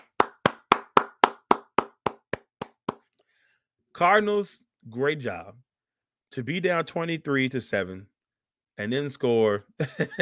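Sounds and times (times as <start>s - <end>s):
hand claps: 0.0s - 3.1s
speech: 4.0s - 5.7s, 6.3s - 8.1s, 8.8s - 10.2s.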